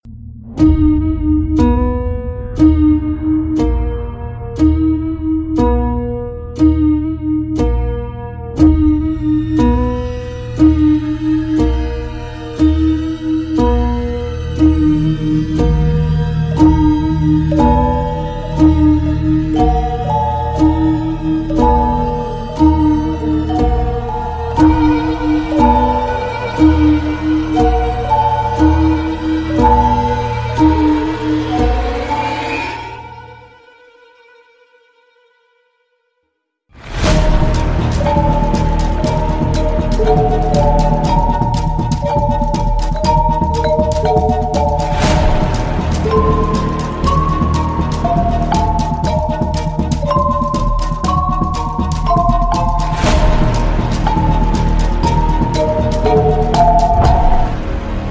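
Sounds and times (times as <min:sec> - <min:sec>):
background theme music: 0:00.0 - 0:33.8, 0:36.8 - 0:58.0.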